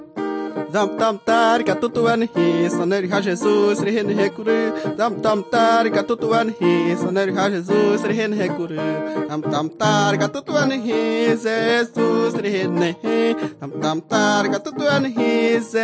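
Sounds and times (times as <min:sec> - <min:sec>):
person singing to God: 0:00.2 - 0:15.8.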